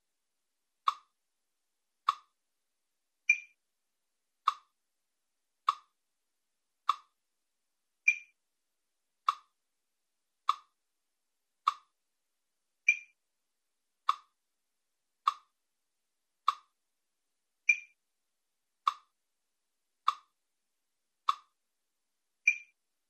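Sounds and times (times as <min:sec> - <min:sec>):
metronome ticking with Steinway piano: 0:00.9 - 0:01.1, 0:02.1 - 0:02.3, 0:03.3 - 0:03.5, 0:04.5 - 0:04.7, 0:05.6 - 0:05.9, 0:06.8 - 0:07.1, 0:08.1 - 0:08.3, 0:09.2 - 0:09.5, 0:10.5 - 0:10.7, 0:11.7 - 0:11.9, 0:12.9 - 0:13.1, 0:15.3 - 0:15.5, 0:16.4 - 0:16.7, 0:17.7 - 0:17.9, 0:20.0 - 0:20.3, 0:21.2 - 0:21.5, 0:22.4 - 0:22.8.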